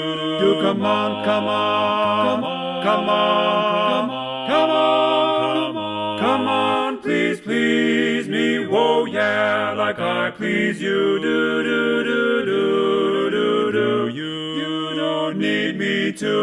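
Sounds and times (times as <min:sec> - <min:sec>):
baritone singing: 0:00.0 - 0:16.4.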